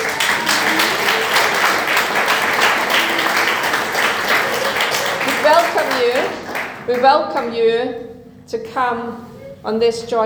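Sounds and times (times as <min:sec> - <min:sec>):
audience applause: 0:00.0 - 0:07.2
speech: 0:06.9 - 0:10.2.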